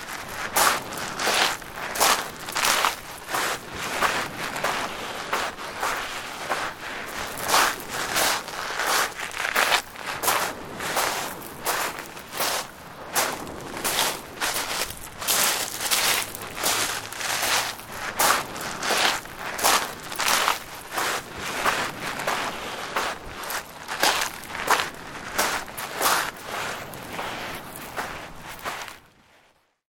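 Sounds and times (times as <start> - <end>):
footsteps on pebble beach by the sea: 0.0 - 29.1.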